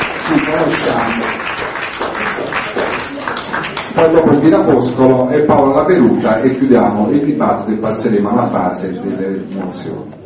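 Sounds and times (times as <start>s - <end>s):
applause at a political association meeting in Naples: 0.0s - 4.2s
speech: 0.3s - 2.1s, 4.0s - 10.2s.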